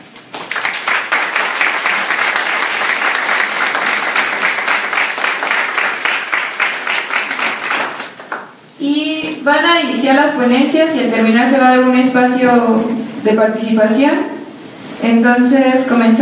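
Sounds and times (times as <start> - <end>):
audience applause: 0.0 - 8.6
speech: 9.5 - 14.3, 15.0 - 16.2.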